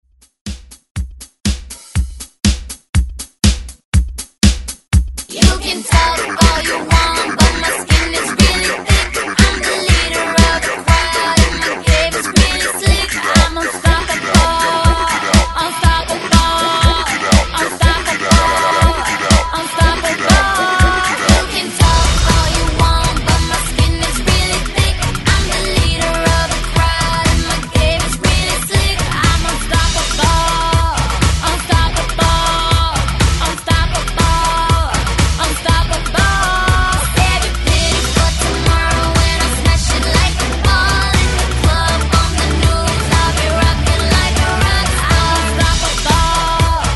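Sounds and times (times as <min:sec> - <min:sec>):
drum beat at 121 BPM: 0:00.2 - 0:46.9.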